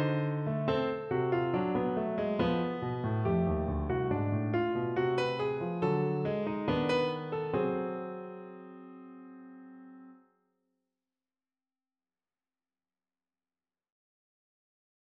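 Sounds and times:
piano fugue: 0.0s - 10.2s.

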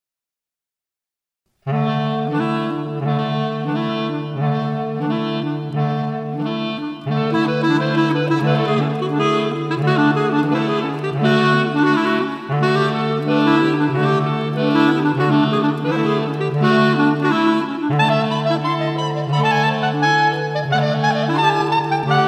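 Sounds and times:
piano sonatina: 1.7s - 22.2s.

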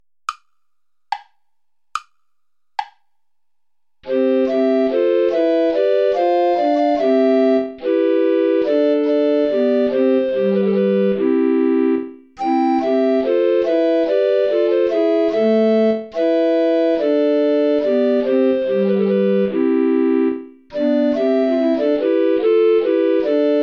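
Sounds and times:
play-along accompaniment without alto recorder: 4.0s - 23.6s.

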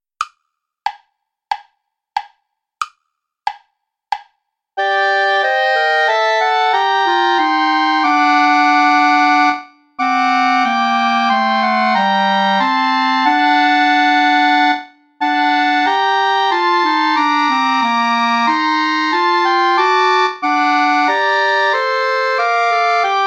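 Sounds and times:
play-along backing music without clarinet: 4.8s - 23.2s.

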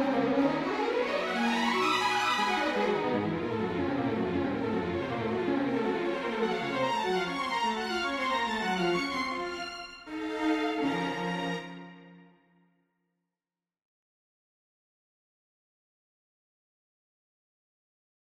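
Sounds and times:
string quartet playing a prelude: 0.0s - 12.1s.

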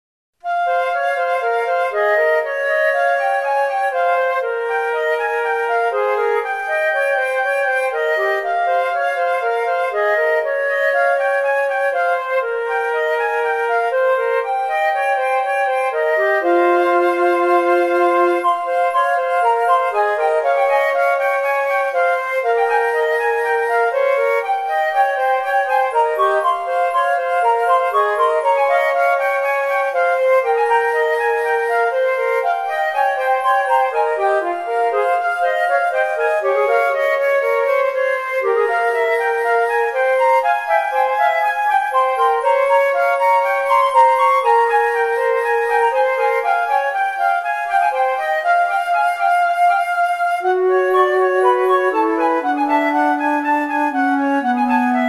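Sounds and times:
flutes: 0.4s - 55.0s.

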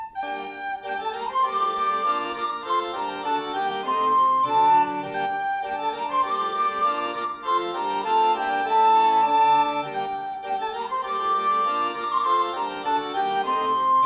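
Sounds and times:
organ transcription: 0.2s - 14.0s.

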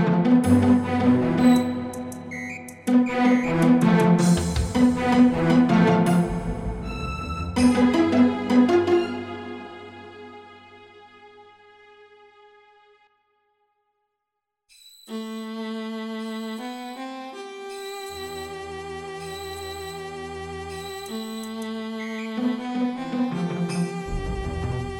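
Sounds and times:
incidental music: 0.0s - 10.4s, 17.7s - 24.9s.

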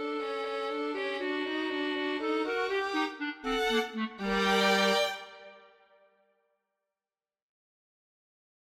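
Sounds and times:
violin and clarinet duo: 0.0s - 5.6s.

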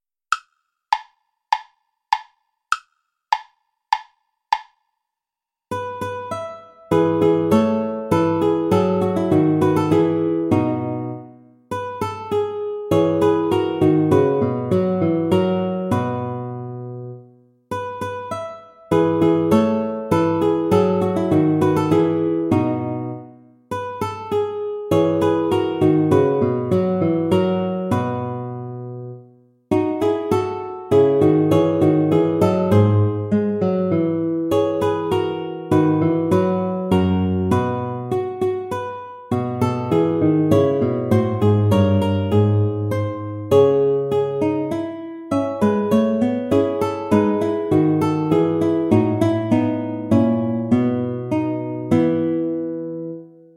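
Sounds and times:
play-along backing track without guitar: 0.0s - 4.8s, 5.7s - 53.5s.

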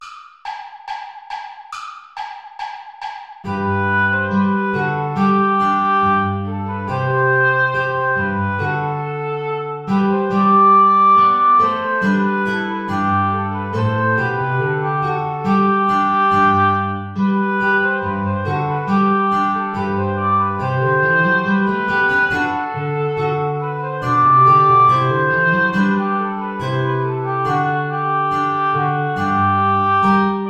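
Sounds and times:
ballet play-along backing track without guitar: 3.5s - 30.4s.

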